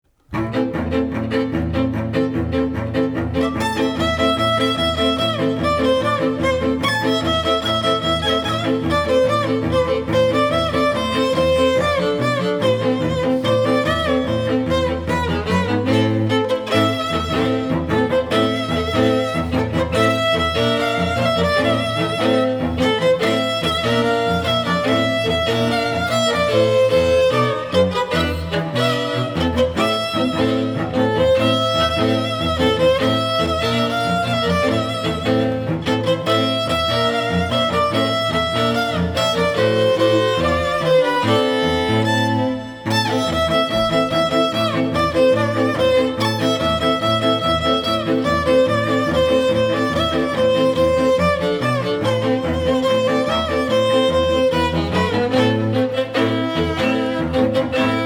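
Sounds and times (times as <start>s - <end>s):
string trio: 0.0s - 58.0s.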